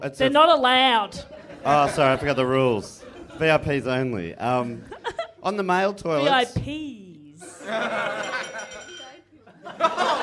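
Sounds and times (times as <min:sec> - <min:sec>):
speech: 0:00.0 - 0:07.0, 0:07.7 - 0:08.5
laughter: 0:01.2 - 0:05.5, 0:07.4 - 0:10.2
glass being kicked: 0:08.2 - 0:09.2.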